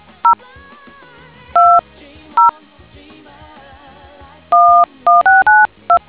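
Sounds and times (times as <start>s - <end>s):
DTMF tones: 1.6s - 1.8s, 4.6s - 6.0s.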